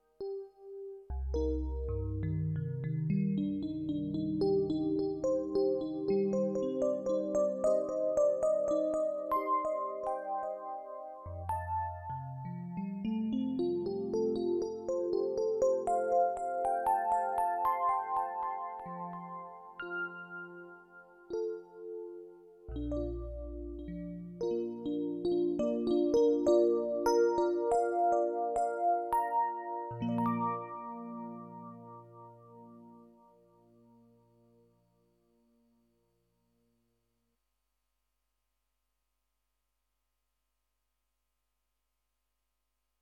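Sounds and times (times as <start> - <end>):
electric piano: 0.1 - 34.0.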